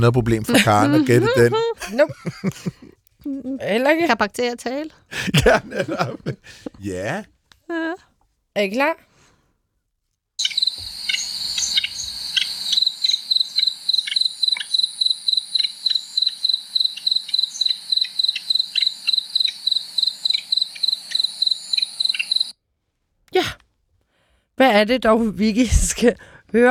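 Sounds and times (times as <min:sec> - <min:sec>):
speech: 0:00.0 - 0:09.1, 0:24.6 - 0:26.6
laughter: 0:00.4 - 0:03.0, 0:05.1 - 0:07.2
dormouse calling: 0:00.5 - 0:02.4, 0:10.4 - 0:22.5.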